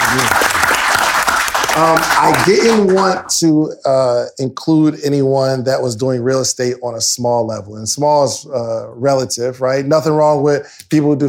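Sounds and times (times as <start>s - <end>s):
audience applause: 0.0s - 3.3s
speech: 1.8s - 11.2s.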